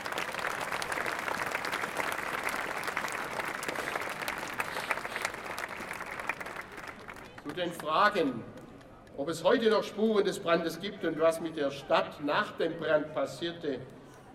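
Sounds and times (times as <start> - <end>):
audience applause: 0.0 - 7.6
speech: 7.5 - 8.6, 9.2 - 14.0.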